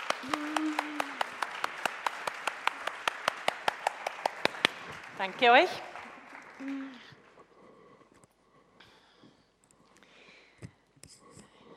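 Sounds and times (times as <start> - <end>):
audience applauding: 0.0 - 7.4
speech: 5.2 - 5.9, 6.6 - 7.1.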